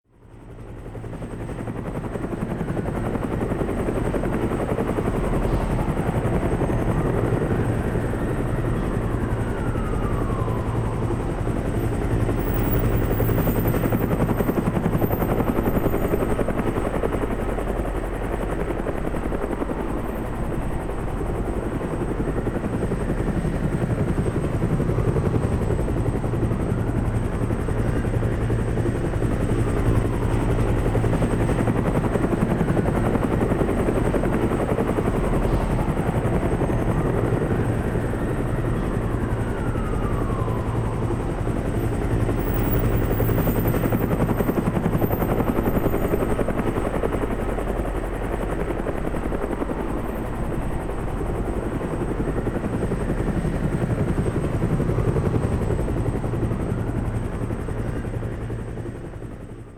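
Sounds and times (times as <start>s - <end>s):
helicopter: 0.0s - 59.7s.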